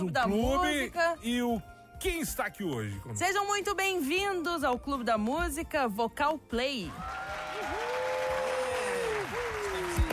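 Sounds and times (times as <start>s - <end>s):
speech: 0.0s - 7.3s
audience applause: 6.9s - 10.1s.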